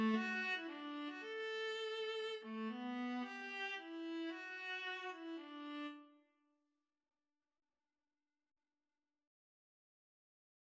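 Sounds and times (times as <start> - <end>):
viola duet: 0.0 - 6.0.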